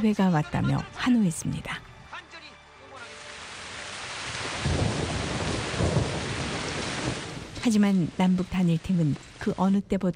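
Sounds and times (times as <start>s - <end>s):
speech: 0.0s - 1.9s, 7.6s - 10.1s
heavy pouring rain: 2.9s - 9.8s
thunder: 4.4s - 7.8s.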